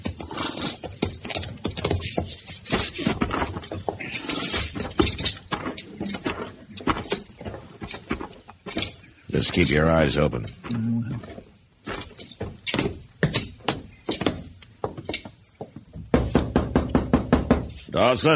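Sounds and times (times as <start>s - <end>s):
horses' hooves clip-clopping: 0.0s - 17.1s
speech: 9.4s - 11.4s, 18.0s - 18.3s.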